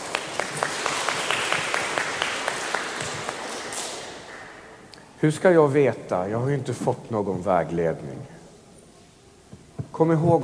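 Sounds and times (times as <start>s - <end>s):
audience applause: 0.0s - 4.7s
speech: 5.2s - 8.4s, 10.0s - 10.4s.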